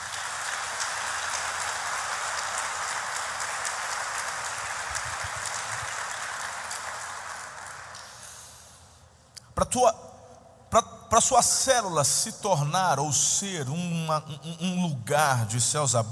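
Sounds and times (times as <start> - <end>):
audience applause: 0.0 - 8.4
speech: 9.6 - 10.1, 10.7 - 16.1.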